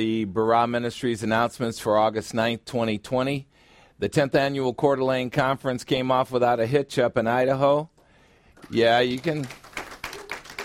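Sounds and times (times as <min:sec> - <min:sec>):
speech: 0:00.0 - 0:07.9, 0:08.6 - 0:09.6
audience clapping: 0:08.6 - 0:10.6.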